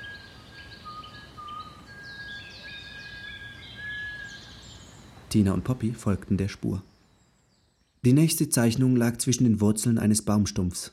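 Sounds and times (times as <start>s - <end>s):
thin high whistling tones: 0.0s - 4.6s
speech: 5.3s - 6.9s, 8.0s - 10.9s.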